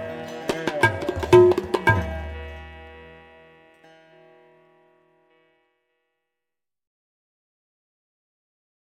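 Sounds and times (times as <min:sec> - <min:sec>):
sitar music of India: 0:00.0 - 0:06.4.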